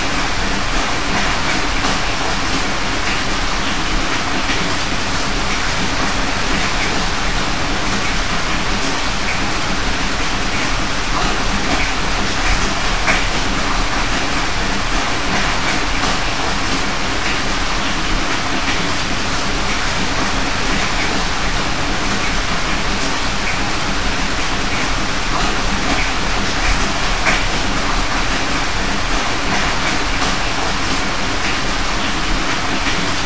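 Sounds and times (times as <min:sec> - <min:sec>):
rain heard indoors: 0:00.0 - 0:33.2.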